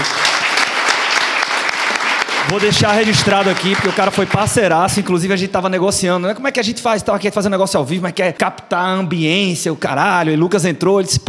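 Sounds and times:
audience clapping: 0.0 - 5.3
speech: 2.5 - 11.2.

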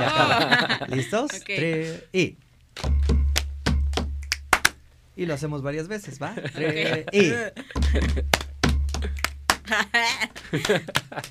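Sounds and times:
laughter: 0.0 - 1.9, 6.3 - 8.4, 9.0 - 11.2
speech: 0.0 - 3.0, 5.2 - 8.4, 9.7 - 11.2
finger snap: 2.8 - 4.8, 8.3 - 9.6
hand clap: 2.8 - 4.8, 7.8 - 11.2.

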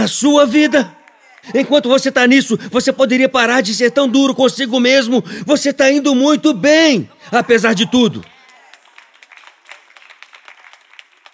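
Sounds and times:
speech: 0.0 - 8.3
few people clapping: 1.0 - 1.6, 8.2 - 11.3
laughter: 6.9 - 8.8.

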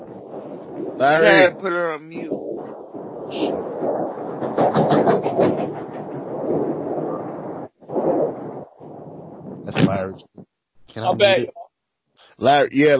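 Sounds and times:
speech: 1.0 - 2.4, 3.3 - 4.7, 9.8 - 10.3, 10.9 - 11.6, 12.4 - 12.9
train passing overhead on trestle: 3.3 - 7.8.

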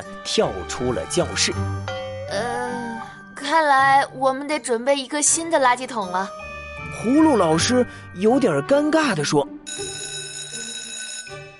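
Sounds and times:
speech: 0.2 - 1.9, 3.6 - 9.9
bell ringing: 1.8 - 2.4, 9.7 - 11.5.

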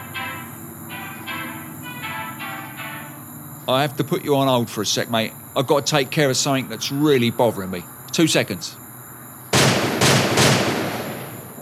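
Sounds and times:
speech: 3.7 - 8.8
gunshots: 9.5 - 11.6.

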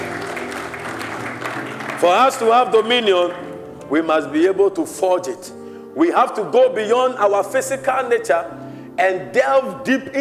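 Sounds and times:
audience clapping in praise: 0.0 - 3.5
speech: 2.0 - 10.1.

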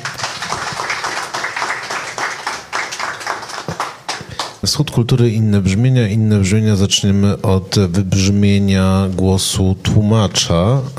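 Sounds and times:
audience applause: 0.0 - 4.7
speech: 4.7 - 10.9.

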